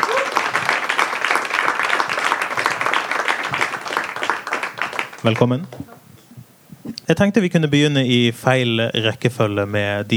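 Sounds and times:
audience applause: 0.0s - 6.2s
speech: 5.2s - 5.9s, 7.1s - 10.1s.

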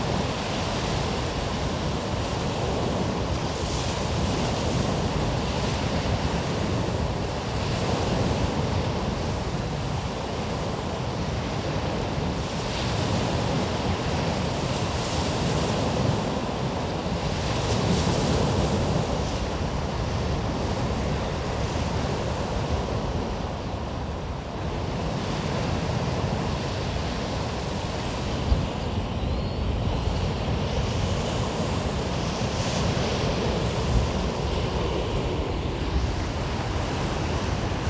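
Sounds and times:
waves washing along the Omø coastline: 0.0s - 37.8s
wind buffeting: 28.0s - 37.8s.

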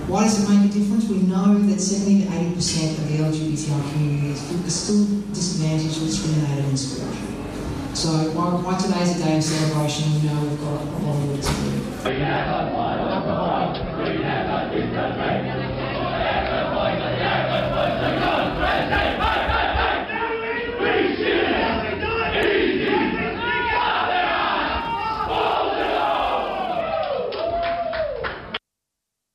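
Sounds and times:
speech: 0.1s - 15.8s
Yarra Glen supporters cheering at the 2018 Yarra Valley Pride Cup football match: 12.1s - 28.6s.

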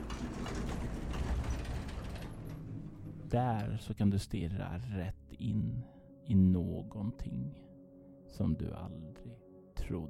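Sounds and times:
elevator door sliding open: 0.0s - 3.4s
speech: 3.3s - 7.7s, 8.3s - 10.0s.

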